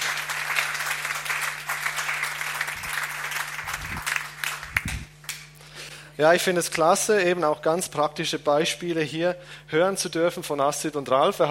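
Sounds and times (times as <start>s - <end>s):
audience applause: 0.0s - 5.4s
speech: 6.2s - 11.4s.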